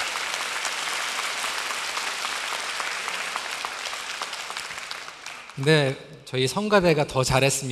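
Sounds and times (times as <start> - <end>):
audience applause: 0.0 - 5.9
speech: 5.6 - 7.7.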